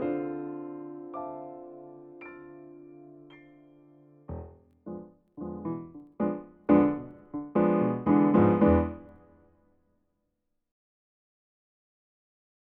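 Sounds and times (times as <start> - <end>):
harmonic minor melody: 0.0 - 9.4.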